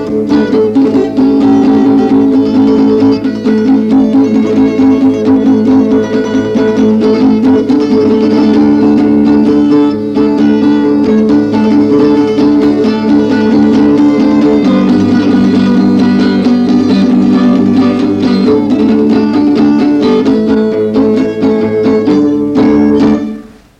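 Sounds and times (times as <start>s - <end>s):
polka on guitar played four-handed: 0.0s - 23.7s.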